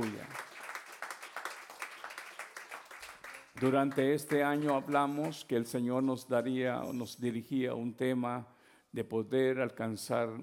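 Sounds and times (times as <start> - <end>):
applause: 0.0 - 5.5
speech: 3.6 - 10.4.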